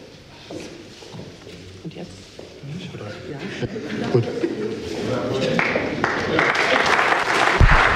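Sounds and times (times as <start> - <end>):
speech: 1.8 - 2.3, 3.0 - 6.5
laughter: 3.4 - 5.6
applause for newly sworn council members: 5.5 - 7.9.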